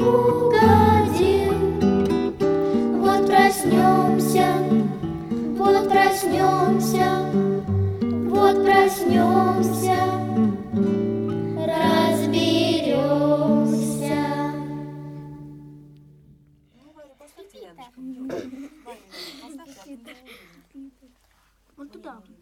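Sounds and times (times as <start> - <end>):
vocal ensemble singing: 0.0 - 15.5
guitar: 0.0 - 16.8.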